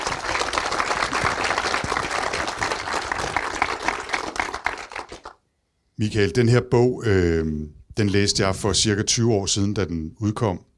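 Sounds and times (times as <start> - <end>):
studio audience applause for a talk show guest: 0.0 - 5.4
speech: 6.0 - 10.7.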